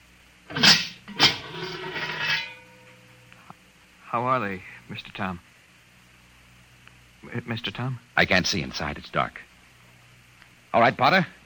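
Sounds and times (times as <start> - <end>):
kiln door scraping open after firing glazed tiles: 0.5 - 2.7
speech: 4.1 - 5.5, 7.2 - 9.5, 10.8 - 11.4.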